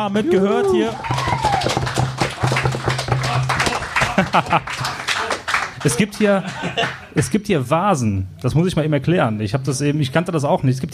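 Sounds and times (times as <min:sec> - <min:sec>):
speech: 0:00.0 - 0:01.4, 0:04.4 - 0:04.8, 0:05.8 - 0:10.9
crowd applauding: 0:00.4 - 0:07.2
laughter: 0:02.4 - 0:07.3.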